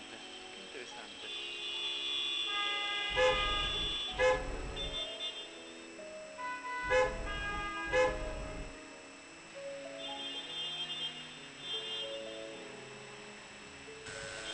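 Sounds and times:
car horn honking: 0:00.0 - 0:08.8, 0:10.0 - 0:12.7.

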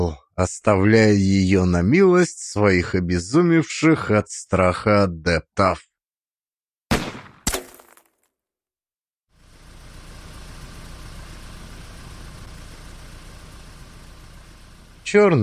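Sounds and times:
speech: 0:00.1 - 0:05.9, 0:15.1 - 0:15.4
car engine idling quietly: 0:09.4 - 0:15.4.

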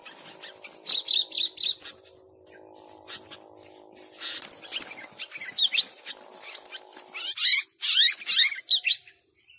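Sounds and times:
sooty-headed bulbul chattering song: 0:00.0 - 0:09.2.

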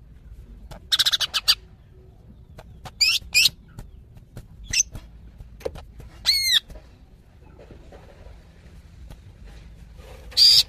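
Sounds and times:
female greater green leafbird calling: 0:00.5 - 0:05.1, 0:06.0 - 0:06.8, 0:10.3 - 0:10.6.

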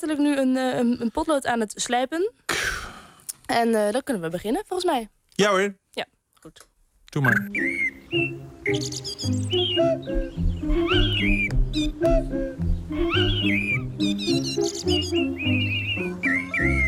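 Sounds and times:
speech: 0:00.0 - 0:02.9, 0:03.5 - 0:16.8
musical jingle of finch-like bird tweets: 0:07.3 - 0:12.0, 0:13.0 - 0:16.8.

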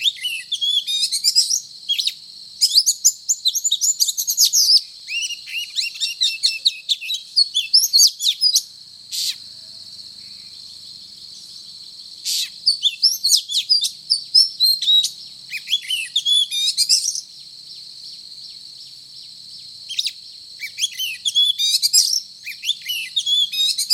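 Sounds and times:
Oriental magpie-robin singing: 0:00.0 - 0:09.4, 0:12.3 - 0:17.2, 0:19.9 - 0:23.9.

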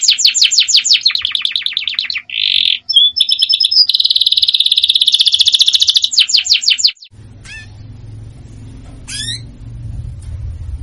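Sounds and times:
Belgian canary giving a dense high trill with rapid rolls: 0:00.0 - 0:08.0, 0:09.0 - 0:09.7.

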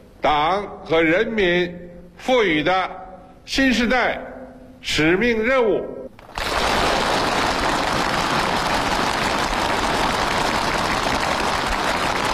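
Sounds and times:
speech: 0:00.2 - 0:06.0
long thunderous applause from a large crowd: 0:06.2 - 0:12.3.

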